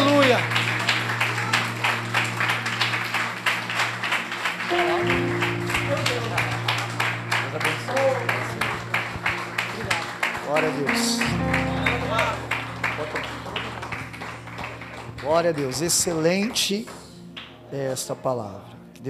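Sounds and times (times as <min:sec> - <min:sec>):
audience clapping hands: 0:00.0 - 0:18.0
speech: 0:15.4 - 0:17.0, 0:17.7 - 0:19.0.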